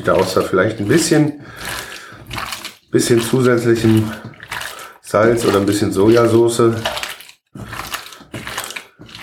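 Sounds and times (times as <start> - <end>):
speech: 0.0 - 1.9, 2.9 - 4.4, 5.1 - 7.0, 7.6 - 7.8
meat being kneaded inside its plastic packaging: 0.0 - 9.2.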